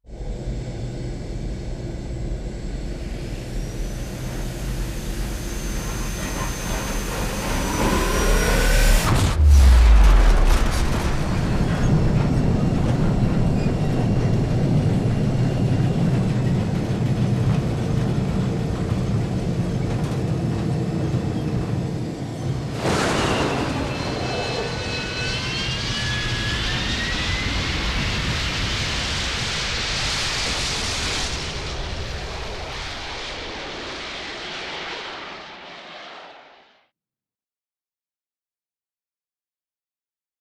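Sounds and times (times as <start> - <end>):
dropship engine: 0.1 - 31.1.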